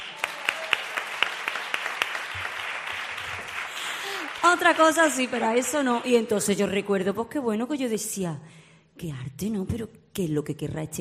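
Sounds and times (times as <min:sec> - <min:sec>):
audience applause: 0:00.0 - 0:06.5
speech: 0:04.4 - 0:10.9.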